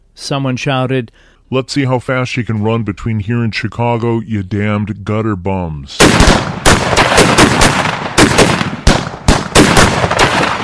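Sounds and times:
speech: 0:00.2 - 0:07.9
gunfire from rifles, shotguns and pistols: 0:06.0 - 0:10.6.

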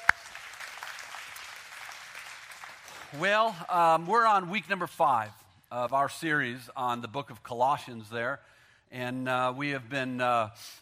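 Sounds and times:
audience applauding: 0:00.0 - 0:04.1
speech: 0:03.1 - 0:10.8.

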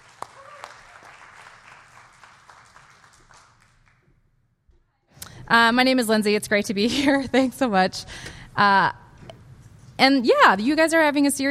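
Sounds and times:
audience applauding to welcome a speaker: 0:00.0 - 0:04.1
speech: 0:05.5 - 0:09.0, 0:10.0 - 0:11.4.

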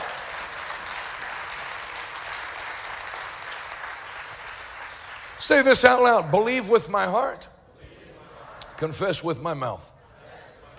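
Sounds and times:
audience clapping hands: 0:00.0 - 0:06.2
speech: 0:05.4 - 0:07.5, 0:08.8 - 0:09.9.

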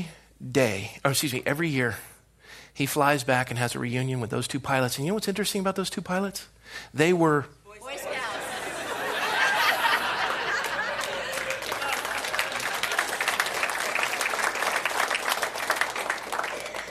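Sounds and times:
speech: 0:00.0 - 0:02.1, 0:02.8 - 0:08.2
laughter: 0:07.9 - 0:13.5
audience clapping: 0:09.2 - 0:16.8.

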